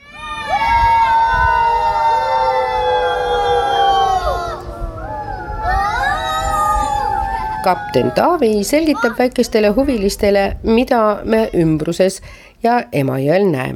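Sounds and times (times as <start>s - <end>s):
small children shouting joyfully on boat: 0.0s - 9.9s
low rumbling background: 0.4s - 12.6s
speech: 7.6s - 13.7s.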